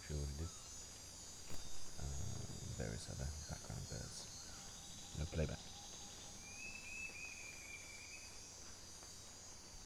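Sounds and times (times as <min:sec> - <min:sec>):
steady shrill insect chorus: 0:00.0 - 0:09.8
bird long thin falling whistle: 0:06.4 - 0:08.4.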